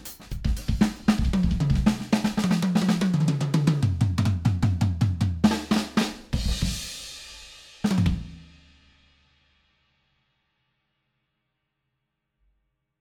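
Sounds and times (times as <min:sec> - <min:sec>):
Fame Fortress 14 by 6.5 inch snare drum: 0:00.0 - 0:08.5.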